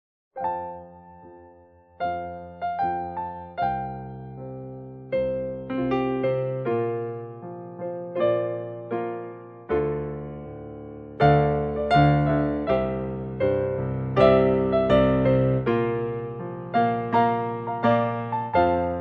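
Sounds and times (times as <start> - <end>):
piano: 0.3 - 18.9.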